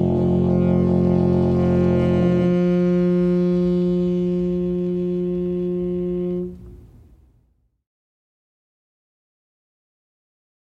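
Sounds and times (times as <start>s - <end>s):
saxophone: 0.0s - 6.9s.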